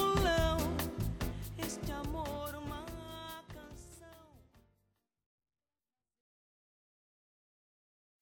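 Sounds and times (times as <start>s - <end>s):
bossa nova music: 0.0s - 4.8s.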